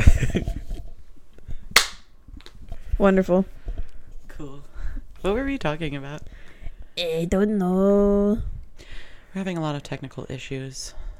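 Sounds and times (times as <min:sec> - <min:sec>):
single hand clap: 0:01.8 - 0:02.1
speech: 0:03.0 - 0:03.6, 0:04.4 - 0:06.4, 0:07.0 - 0:08.6, 0:09.3 - 0:11.0.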